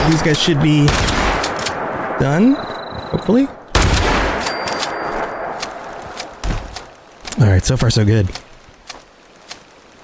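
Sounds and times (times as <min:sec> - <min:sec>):
continuous rumbling background: 0:00.0 - 0:10.0
speech: 0:00.1 - 0:01.2, 0:02.2 - 0:03.6, 0:07.4 - 0:08.4
shotgun blasts in a video game: 0:00.8 - 0:02.3, 0:03.7 - 0:04.5.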